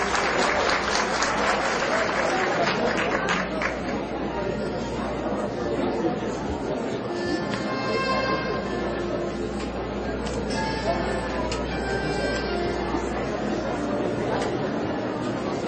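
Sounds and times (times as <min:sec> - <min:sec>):
audience applause: 0:00.0 - 0:04.3
crowd chatter: 0:00.0 - 0:15.6.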